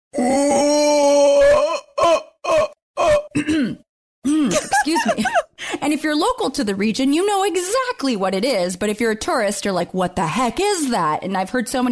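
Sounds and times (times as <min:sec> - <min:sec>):
person imitating howler monkey call: 0:00.1 - 0:03.3
speech: 0:05.0 - 0:11.9.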